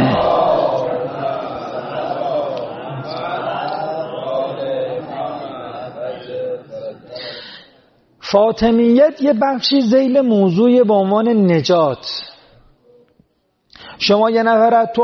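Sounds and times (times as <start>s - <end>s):
crowd reciting a religious blessing in unison: 0.0s - 7.4s
speech: 8.3s - 12.3s, 14.0s - 15.0s.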